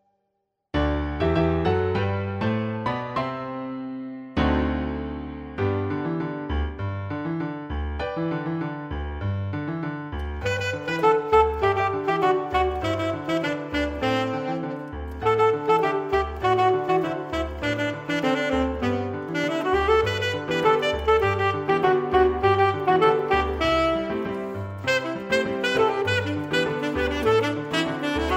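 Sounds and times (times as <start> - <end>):
piano: 0.0 - 28.3
alto saxophone playing Latin rhythms: 10.2 - 28.3.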